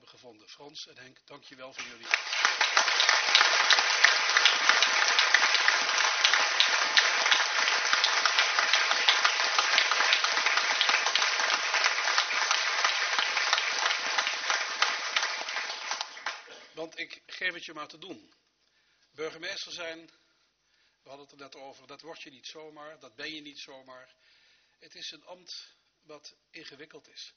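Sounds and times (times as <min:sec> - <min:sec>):
speech: 0:00.3 - 0:02.9, 0:16.9 - 0:18.4, 0:19.2 - 0:20.2, 0:21.0 - 0:27.3
audience applause: 0:01.8 - 0:16.6.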